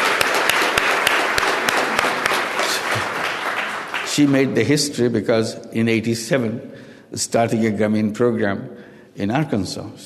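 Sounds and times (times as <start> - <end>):
audience applause: 0.0 - 4.6
speech: 4.2 - 10.0.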